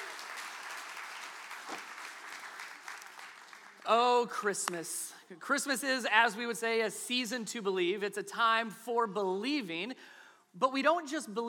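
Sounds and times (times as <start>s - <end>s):
crowd applauding: 0.0s - 4.0s
speech: 3.9s - 11.4s.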